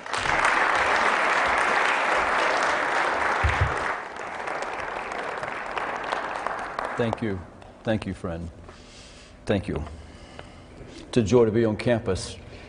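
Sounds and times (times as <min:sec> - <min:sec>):
campus audience applause welcoming a guest speaker: 0:00.0 - 0:07.2
speech: 0:07.0 - 0:08.6, 0:09.5 - 0:10.0, 0:11.0 - 0:12.4.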